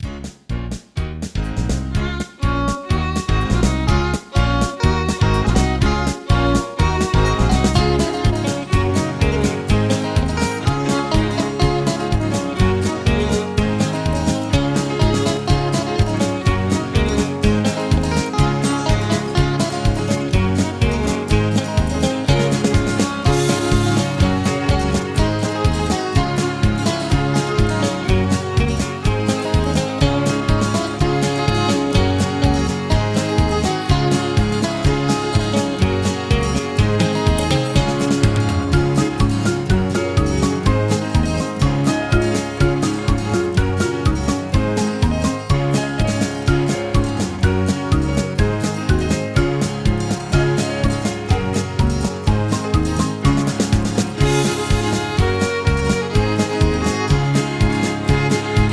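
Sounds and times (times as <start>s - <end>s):
low key instrumental music: 0.0s - 58.7s.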